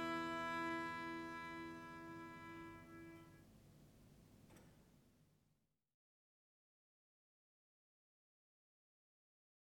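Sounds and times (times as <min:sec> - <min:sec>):
viola da gamba and harpsichord adagio in G minor: 0:00.0 - 0:03.3.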